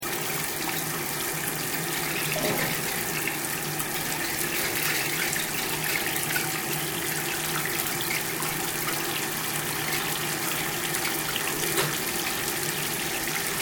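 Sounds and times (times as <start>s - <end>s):
Japanese shower system water running: 0.0s - 13.6s.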